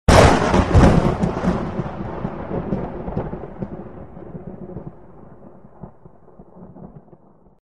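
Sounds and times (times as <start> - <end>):
thunder: 0.1 - 7.6.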